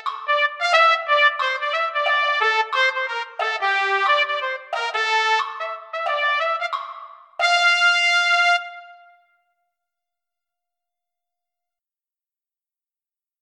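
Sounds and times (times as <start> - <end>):
trumpet: 0.0 - 9.6.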